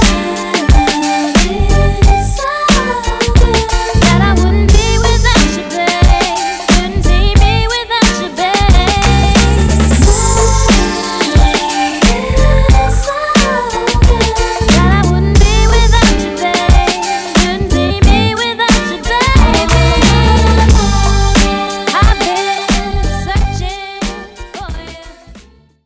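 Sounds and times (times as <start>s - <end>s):
drum beat at 90 BPM: 0.0s - 25.1s.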